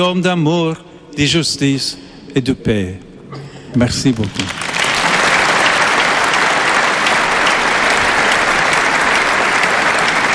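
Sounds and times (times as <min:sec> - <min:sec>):
speech: 0:00.0 - 0:04.7
large Christian crowd applauding the pope: 0:04.0 - 0:10.3.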